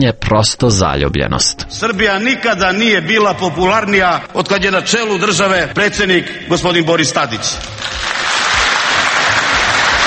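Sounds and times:
speech: 0.0s - 8.2s
applause: 7.6s - 10.0s.

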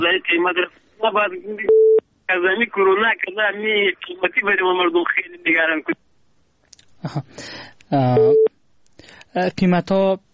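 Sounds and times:
speech: 0.0s - 6.0s, 7.0s - 8.5s, 9.3s - 10.3s
telephone busy tone after a dropped call: 1.7s - 2.0s, 8.2s - 8.5s.

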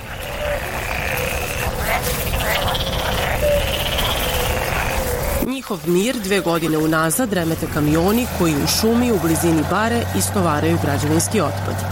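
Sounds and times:
insects buzzing at pond: 0.0s - 10.8s
chorus of frogs croaking and trilling at pond: 0.0s - 11.5s
heavy wind rumble at pond: 0.0s - 11.9s
pulsing rattling calls: 0.0s - 11.9s
speech: 5.7s - 11.9s.

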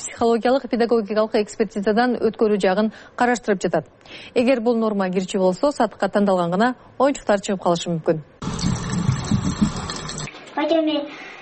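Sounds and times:
speech: 0.2s - 8.8s, 10.6s - 11.2s
running, splashing water as a little girl washes her doll: 8.4s - 10.3s.

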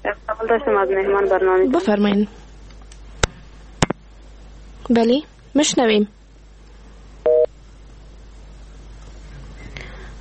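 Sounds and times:
speech: 0.4s - 2.4s, 4.9s - 6.2s
telephone busy signal on a dropped caller's line: 7.3s - 7.5s.

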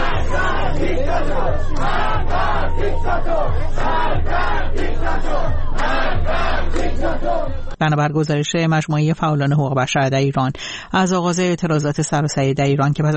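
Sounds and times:
crowd chanting anti-government slogans at a mourning ceremony in Iran: 0.0s - 7.8s
low rumble: 0.0s - 7.8s
speech: 7.8s - 13.1s.

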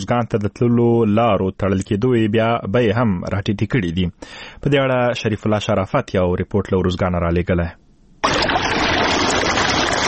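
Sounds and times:
speech: 0.0s - 8.4s
water flowing while irrigating a pomegranate orchard in Tarinkot: 8.2s - 10.0s.

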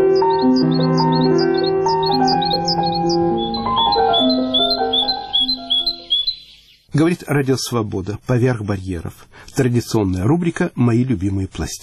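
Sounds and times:
wild birds calling in winter: 0.0s - 6.9s
speech: 7.0s - 11.8s.

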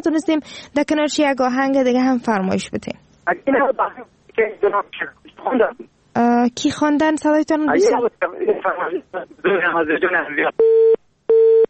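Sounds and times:
speech: 0.0s - 11.0s
telephone busy tone after a dropped call: 10.6s - 11.6s.

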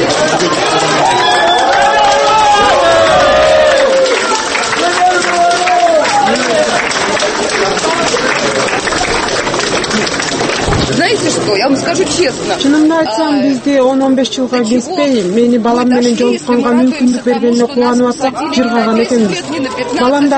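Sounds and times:
supporters clapping as a woman is released from a courtroom: 0.0s - 13.4s, 15.6s - 20.3s
many supporters talking at a courtroom release: 0.0s - 20.3s
speech: 11.8s - 20.3s.

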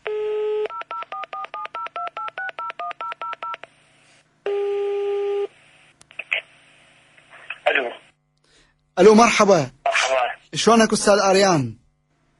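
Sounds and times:
telephone dial tone: 0.0s - 3.6s, 4.5s - 5.5s
speech: 9.0s - 9.8s, 10.5s - 11.8s.

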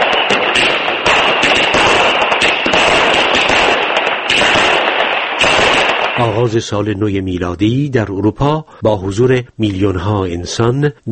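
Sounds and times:
fireworks exploding at a New Year celebration: 0.0s - 6.8s
speech: 6.4s - 11.0s.

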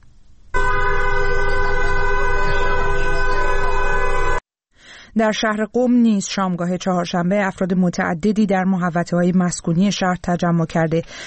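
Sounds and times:
passing cars honking horns continuously: 0.6s - 4.4s
speech: 5.2s - 11.2s.

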